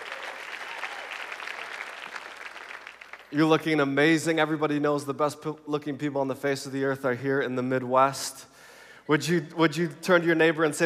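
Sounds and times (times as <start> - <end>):
church audience round of applause: 0.0 - 3.4
speech: 3.3 - 8.5, 9.1 - 10.8.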